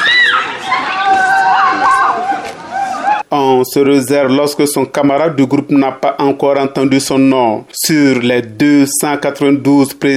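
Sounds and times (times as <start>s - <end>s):
shouts of joy: 0.0s - 3.2s
speech: 3.4s - 10.1s.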